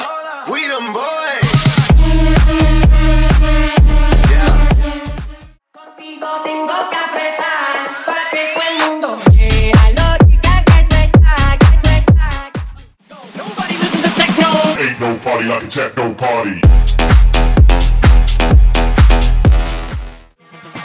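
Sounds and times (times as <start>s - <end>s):
Top 40 club EDM bootleg megamix: 1.4s - 5.5s, 6.7s - 15.0s, 16.6s - 20.8s.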